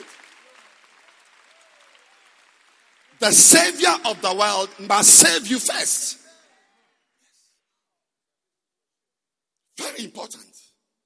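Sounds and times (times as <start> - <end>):
audience clapping: 0.0 - 6.0
speech: 3.2 - 6.2.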